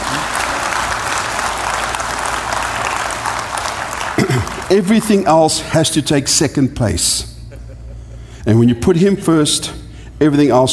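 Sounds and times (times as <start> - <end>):
audience applause: 0.0 - 5.3
speech: 4.7 - 7.3, 8.4 - 10.7.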